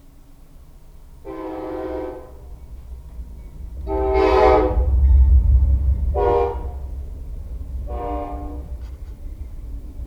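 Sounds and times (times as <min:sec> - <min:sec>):
train whistle: 0:01.2 - 0:02.6, 0:03.8 - 0:05.3, 0:06.1 - 0:07.0, 0:07.8 - 0:08.9.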